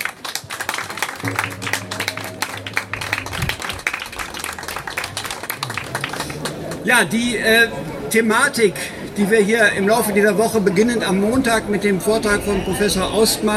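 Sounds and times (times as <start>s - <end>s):
audience applause: 0.0s - 6.9s
speech: 6.8s - 13.5s.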